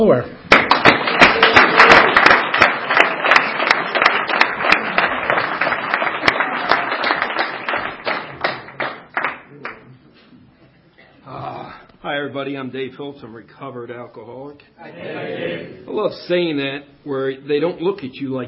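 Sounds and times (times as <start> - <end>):
speech: 0.0 - 0.6, 12.2 - 18.4
audience applause welcoming a speaker at an Alcoholics Anonymous meeting: 0.5 - 10.0.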